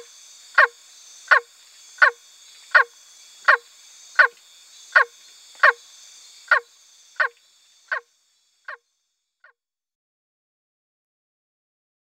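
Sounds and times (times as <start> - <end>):
Phrynohyas frog calling: 0.0 - 5.8, 6.4 - 8.8.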